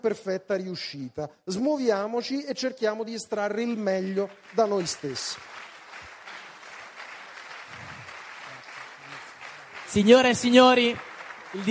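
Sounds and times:
speech: 0.0 - 5.6, 9.9 - 11.7
audience applause: 4.0 - 11.7.

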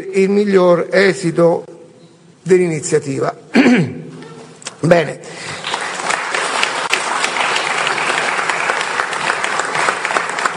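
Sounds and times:
speech: 0.0 - 1.7, 2.4 - 4.0, 4.8 - 5.6
audience applause: 5.6 - 10.5.

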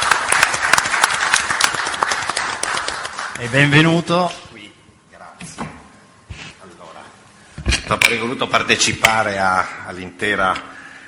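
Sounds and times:
audience applause: 0.0 - 3.6
speech: 3.4 - 4.5, 7.9 - 10.7.

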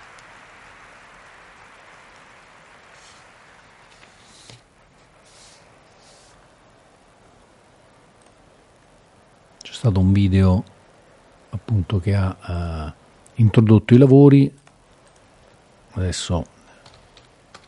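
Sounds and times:
audience applause: 0.0 - 4.5
speech: 9.8 - 10.7, 11.7 - 14.6, 16.0 - 16.5.

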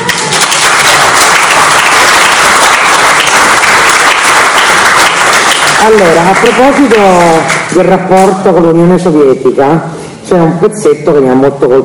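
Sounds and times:
audience applause: 0.0 - 7.7
speech: 5.8 - 11.8.

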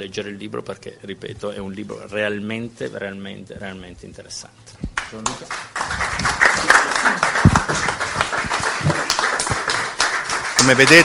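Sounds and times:
speech: 0.0 - 6.7, 10.6 - 11.0
audience applause: 5.2 - 11.0.

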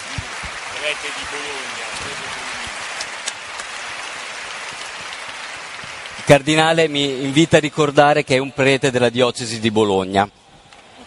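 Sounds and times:
audience applause: 0.0 - 8.6
speech: 0.8 - 2.6, 6.3 - 10.4.

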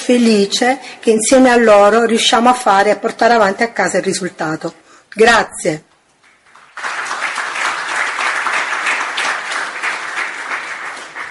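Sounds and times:
speech: 0.1 - 5.9
applause: 6.2 - 11.2.

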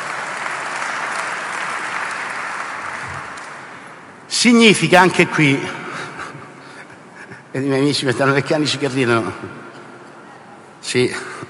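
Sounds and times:
audience applause: 0.0 - 3.9
speech: 4.4 - 5.8, 7.6 - 9.6, 10.9 - 11.3.

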